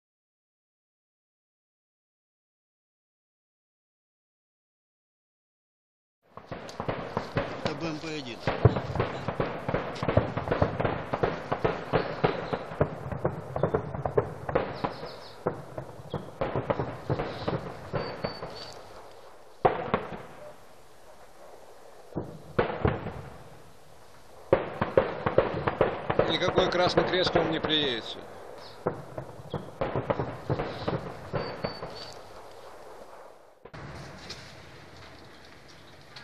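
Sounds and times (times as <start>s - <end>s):
gunfire crackling: 6.3s - 36.2s
shelling bangs: 6.3s - 36.2s
speech: 7.8s - 9.3s, 26.8s - 29.0s.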